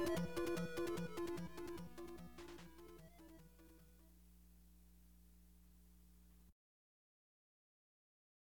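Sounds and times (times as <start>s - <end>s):
field background music: 0.0s - 4.2s.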